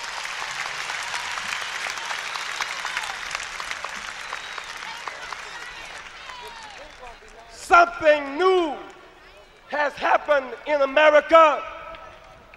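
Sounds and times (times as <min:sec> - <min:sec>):
audience applause: 0:00.0 - 0:07.8
speech: 0:07.9 - 0:08.5, 0:09.9 - 0:11.7.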